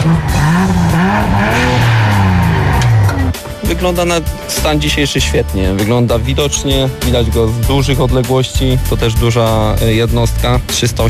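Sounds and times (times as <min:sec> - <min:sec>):
powerful police car engine revving in sport mode: 0:00.0 - 0:03.6
speech: 0:03.8 - 0:11.0.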